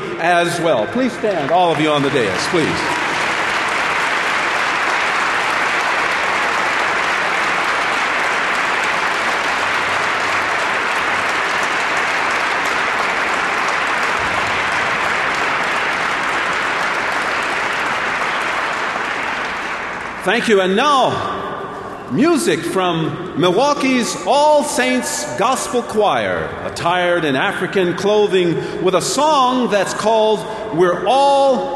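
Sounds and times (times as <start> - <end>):
speech: 0.2 - 3.0, 20.2 - 21.4, 22.1 - 31.7
large audience applause: 0.4 - 20.8.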